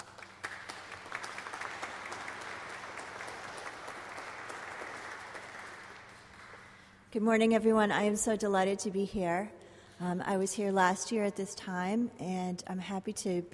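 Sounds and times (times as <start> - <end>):
audience applause welcoming a speaker at a Marsh Chapel gathering: 0.0 - 6.8
speech: 7.1 - 13.5.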